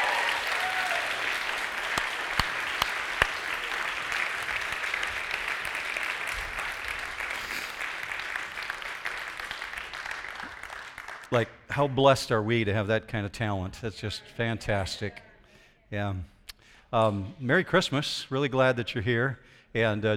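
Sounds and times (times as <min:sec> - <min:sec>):
audience applause: 0:00.0 - 0:11.4
speech: 0:11.3 - 0:15.3, 0:15.9 - 0:16.3, 0:16.9 - 0:20.1.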